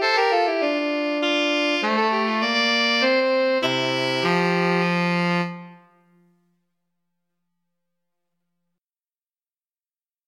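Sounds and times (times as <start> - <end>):
minuet played as alto and tenor saxophone duet: 0.0 - 6.3.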